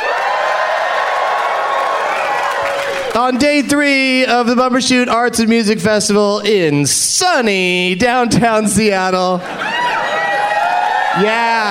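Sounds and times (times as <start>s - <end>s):
live audience cheering and clapping at a comedy show at Bumbershoot in Seattle: 0.0s - 3.4s, 9.5s - 11.6s
speech: 3.2s - 9.7s, 11.2s - 11.6s.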